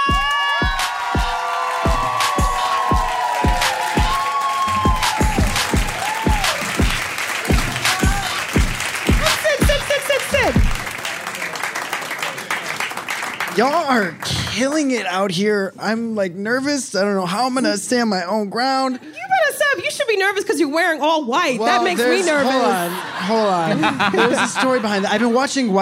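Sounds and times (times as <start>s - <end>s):
shrill whoops and cheers: 0.0s - 6.9s, 7.5s - 8.6s
crowd roar: 0.0s - 11.6s
audience clapping to welcome a guest: 0.0s - 15.2s
speech: 13.6s - 25.8s
laughter: 21.7s - 25.8s.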